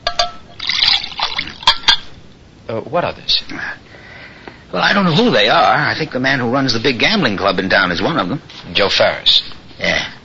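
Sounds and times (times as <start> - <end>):
water being poured: 0.2 - 2.1
speech: 2.7 - 4.0, 4.7 - 10.0.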